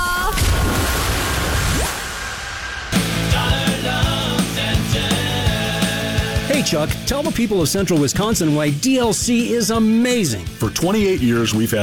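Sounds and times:
cannonball jump splashing into water: 0.3s - 3.0s
upbeat music with a steady beat in a radio ad: 3.0s - 11.8s
speech: 6.6s - 11.8s.

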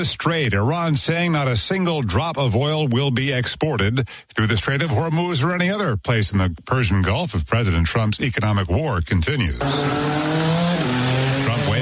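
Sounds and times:
speech: 0.0s - 10.6s
Indy-style race car engines at the Freedom 250 Grand Prix: 9.6s - 11.7s.

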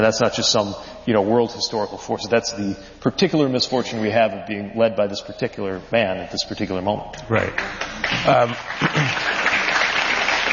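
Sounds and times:
speech: 0.0s - 9.4s
crowd applause: 7.6s - 10.5s.

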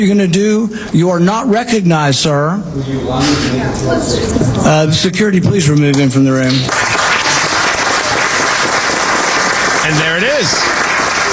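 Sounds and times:
speech: 0.0s - 6.9s, 9.9s - 10.8s
crowd clapping in a hearing room: 5.9s - 11.3s.

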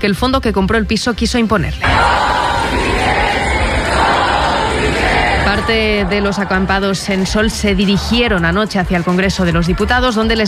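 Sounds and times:
speech: 0.0s - 2.8s, 5.6s - 10.4s
protest crowd shouting in the street: 1.8s - 8.6s.

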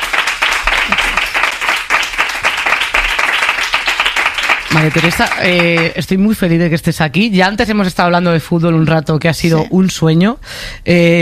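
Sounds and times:
audience applause: 0.0s - 5.9s
speech: 4.7s - 11.1s.

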